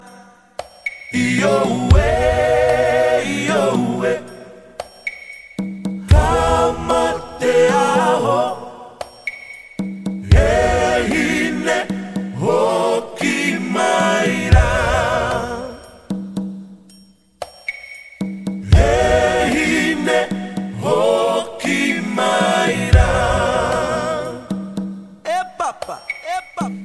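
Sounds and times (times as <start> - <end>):
Fijian island chant: 1.1 - 4.9, 6.1 - 9.2, 10.2 - 16.1, 18.6 - 26.8.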